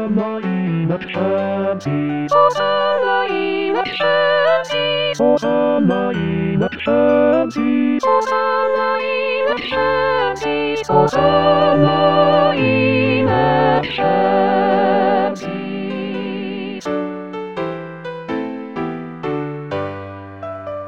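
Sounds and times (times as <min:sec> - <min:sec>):
choir singing all parts of a Christmas rehearsal track: 0:00.0 - 0:17.0.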